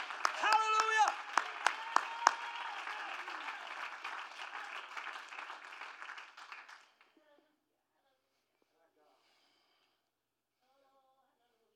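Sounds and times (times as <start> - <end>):
audience hand clapping: 0.0 - 7.2.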